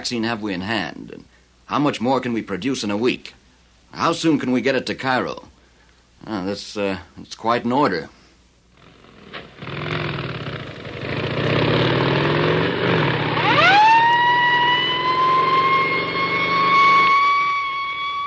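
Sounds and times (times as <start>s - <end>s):
speech: 0.0s - 5.5s, 6.2s - 8.2s
rumbling motorcycle engine: 8.8s - 18.2s
motorcycle escort sirens wailing: 12.0s - 18.2s.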